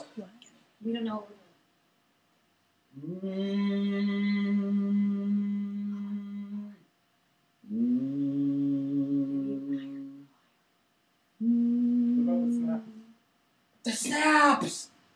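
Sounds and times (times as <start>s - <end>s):
speech: 0.2s - 1.4s, 3.0s - 4.6s
person humming: 3.0s - 6.9s, 7.6s - 10.3s, 11.4s - 13.2s.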